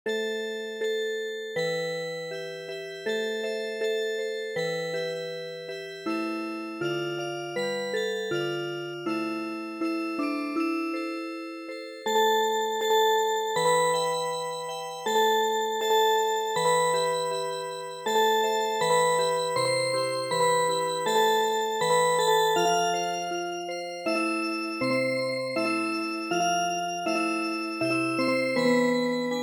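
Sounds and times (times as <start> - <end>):
MIDI music box melody: 0.1 - 29.4.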